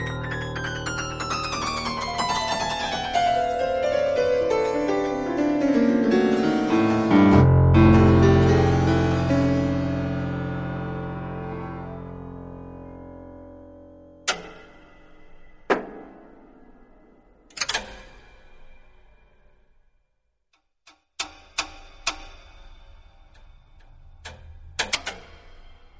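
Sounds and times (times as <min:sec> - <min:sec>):
prepared piano: 0:00.0 - 0:17.8.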